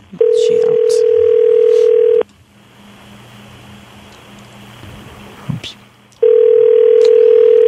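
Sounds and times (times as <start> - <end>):
outgoing-call ringback tone: 0.2 - 2.2, 6.2 - 7.6.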